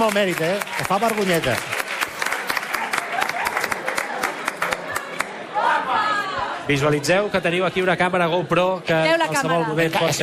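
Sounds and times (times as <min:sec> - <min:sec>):
speech: 0:00.0 - 0:01.8, 0:06.7 - 0:10.2
audience applause: 0:00.0 - 0:05.5.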